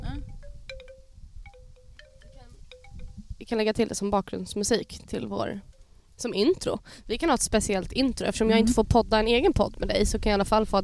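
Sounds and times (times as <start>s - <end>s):
wind chime ringing: 0.0s - 3.4s, 4.8s - 6.0s
speech: 3.5s - 10.8s.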